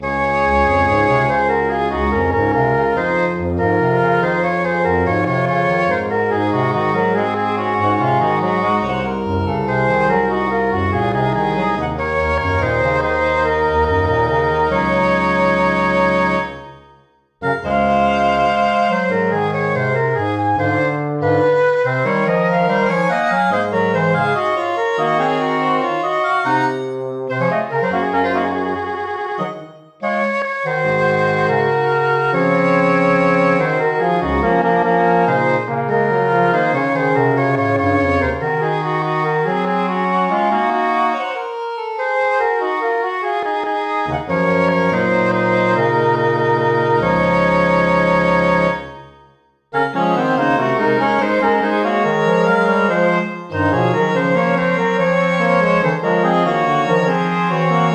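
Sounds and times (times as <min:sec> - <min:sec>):
quartet playing: 0:00.0 - 0:57.9.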